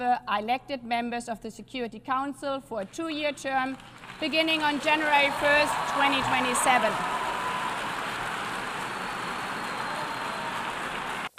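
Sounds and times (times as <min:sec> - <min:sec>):
speech: 0:00.0 - 0:07.2
applause in UN General Assembly hall: 0:03.0 - 0:11.3.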